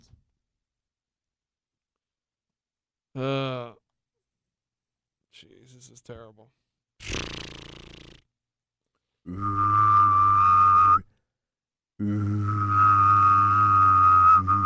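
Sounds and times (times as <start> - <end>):
speech: 3.2 - 3.7, 5.4 - 7.1
person humming and whistling: 9.3 - 11.1, 12.0 - 14.6.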